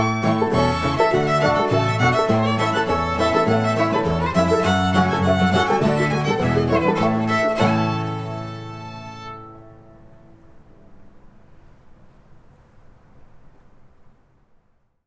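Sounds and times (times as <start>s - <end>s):
string band playing: 0.0s - 10.2s.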